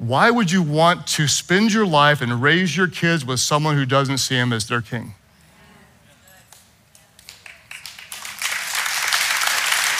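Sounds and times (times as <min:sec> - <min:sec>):
speech: 0:00.1 - 0:05.2
audience clapping: 0:06.5 - 0:09.9.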